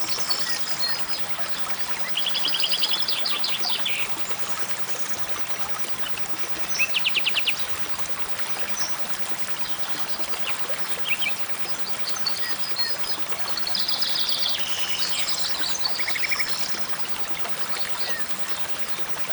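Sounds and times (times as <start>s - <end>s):
mountain stream: 0.0s - 19.3s.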